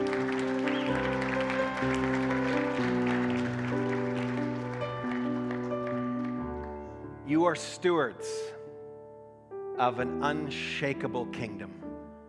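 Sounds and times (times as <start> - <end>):
crowd clapping: 0.0 - 7.0
speech: 7.3 - 8.6, 9.8 - 11.8.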